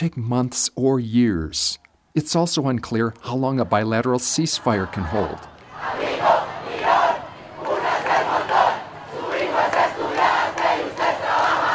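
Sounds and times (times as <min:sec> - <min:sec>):
speech: 0:00.0 - 0:06.0
students chanting slogans in the street: 0:04.4 - 0:11.7.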